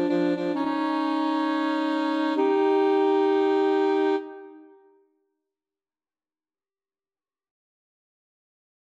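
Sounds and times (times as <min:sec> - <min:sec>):
two alto saxophones and a tenor saxophone playing boogie: 0:00.0 - 0:04.6.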